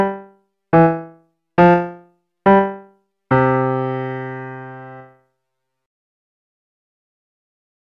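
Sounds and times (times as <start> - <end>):
piano piece: 0.0 - 5.2.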